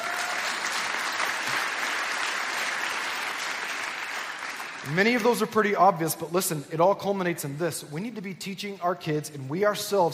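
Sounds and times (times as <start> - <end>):
audience applause: 0.0 - 5.2
speech: 4.8 - 10.1.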